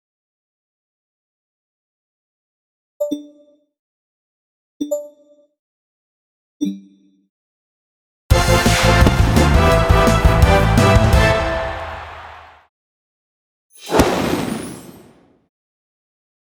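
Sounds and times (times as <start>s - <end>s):
base game sound: 8.3s - 12.4s, 13.8s - 15.4s.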